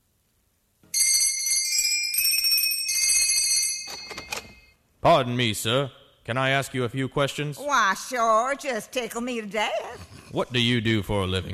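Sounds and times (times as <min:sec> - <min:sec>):
bell ringing at a workshop door: 0:00.9 - 0:04.8
speech: 0:05.0 - 0:11.5.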